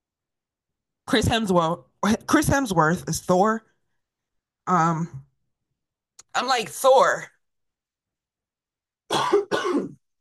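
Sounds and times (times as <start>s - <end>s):
speech: 1.1s - 3.7s, 4.7s - 5.2s, 6.4s - 7.3s
person coughing from choking: 9.1s - 10.1s.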